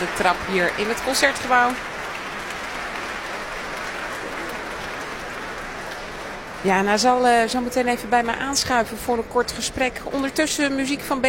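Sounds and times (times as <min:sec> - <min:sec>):
speech: 0:00.0 - 0:01.9, 0:06.6 - 0:11.2
applause from orchestra musicians: 0:00.0 - 0:06.9.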